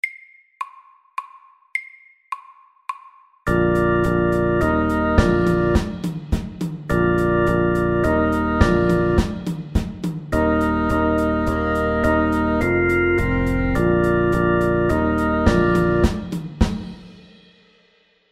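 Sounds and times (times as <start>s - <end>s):
medium-tempo fusion music: 3.5s - 17.0s.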